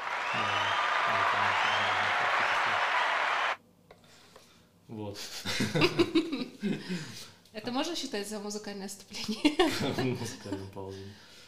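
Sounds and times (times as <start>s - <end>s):
applause sound effect: 0.0s - 3.6s
speech: 5.2s - 11.4s
laughter: 5.4s - 7.0s, 9.2s - 10.7s.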